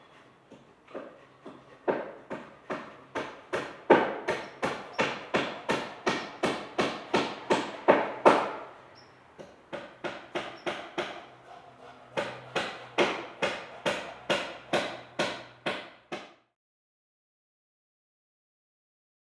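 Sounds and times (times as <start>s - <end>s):
saws in home construction: 0.0s - 7.9s, 8.6s - 15.6s
hammers in home construction: 0.5s - 8.8s, 9.4s - 16.4s.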